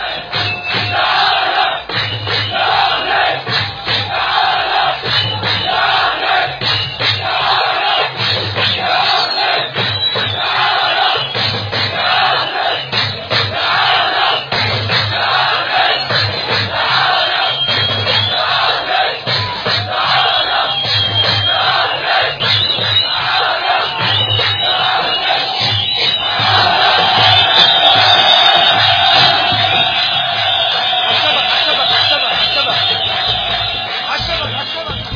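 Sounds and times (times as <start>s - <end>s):
Beit Hanoun football fans cheering and chanting after a win: 0.0s - 35.0s.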